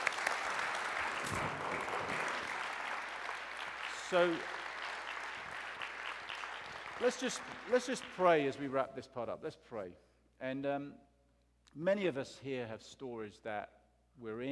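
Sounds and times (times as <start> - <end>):
audience applause: 0.0 - 8.6
speech: 4.1 - 4.6, 7.0 - 11.1, 11.7 - 14.4.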